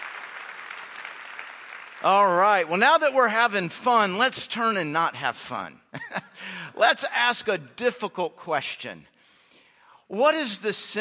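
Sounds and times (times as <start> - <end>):
audience applause: 0.0 - 2.7
speech: 2.0 - 6.2, 6.8 - 9.1, 10.1 - 10.9.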